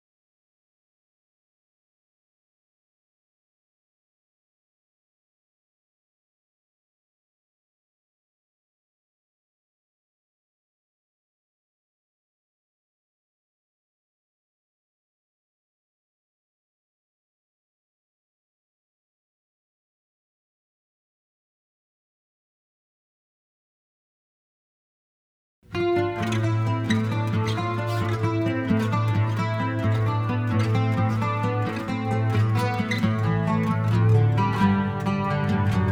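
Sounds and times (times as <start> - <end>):
acoustic music: 25.7 - 35.8.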